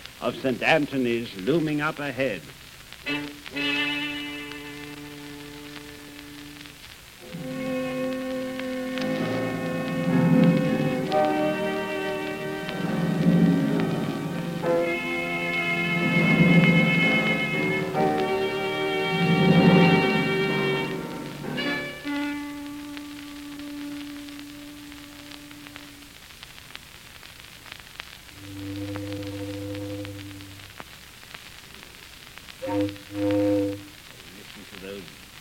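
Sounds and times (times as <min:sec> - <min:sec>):
speech: 0:00.2 - 0:03.9
mournful foghorn in fog: 0:03.0 - 0:26.1, 0:28.3 - 0:30.8, 0:32.6 - 0:34.2.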